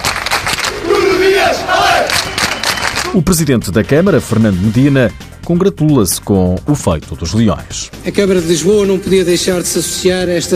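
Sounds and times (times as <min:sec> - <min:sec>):
crowd chanting the coach's name: 0:00.7 - 0:02.1
crowd cheering and shouting: 0:00.7 - 0:03.2
speech: 0:03.1 - 0:10.5.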